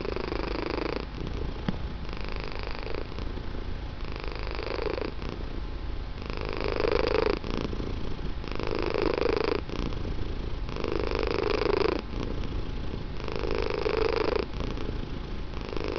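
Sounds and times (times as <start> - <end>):
cat purring: 0.0 - 15.9.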